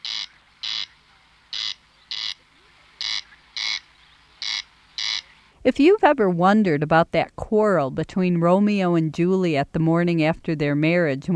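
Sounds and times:
corncrake calling crex-crex: 0.0s - 5.6s
speech: 5.6s - 11.3s.

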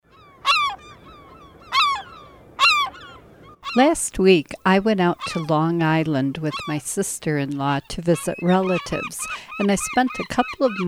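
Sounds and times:
gull calls: 0.0s - 10.8s
soft background hiss: 3.4s - 10.8s
speech: 3.7s - 10.8s.

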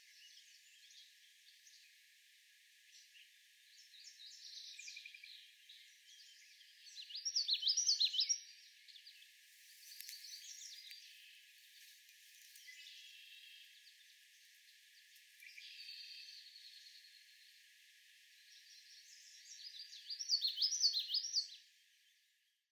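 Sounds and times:
Common Yellowthroat songs: 0.0s - 2.0s, 2.9s - 17.7s, 18.3s - 22.6s.

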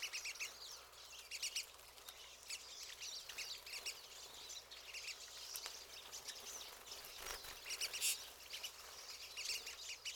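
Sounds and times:
Pine siskins chattering in a dense flock: 0.0s - 10.1s.

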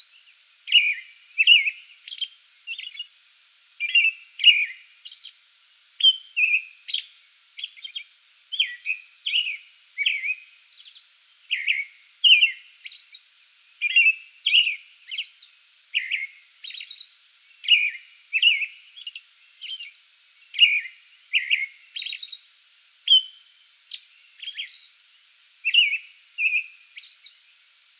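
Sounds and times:
American robin song: 0.0s - 3.2s, 3.8s - 5.4s, 6.0s - 25.0s, 25.6s - 27.4s.

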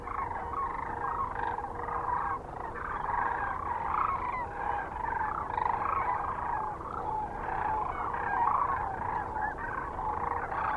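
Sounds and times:
Sandhill cranes flock trumpeting calls: 0.0s - 10.7s.

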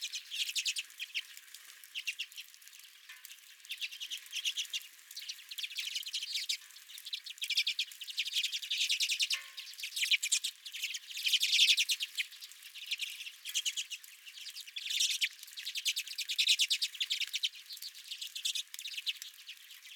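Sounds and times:
redpolls chattering: 0.0s - 2.6s, 3.4s - 19.9s.

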